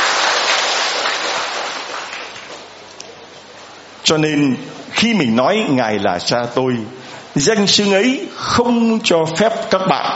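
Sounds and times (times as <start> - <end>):
audience applause: 0.0 - 2.6
speech: 4.1 - 10.1.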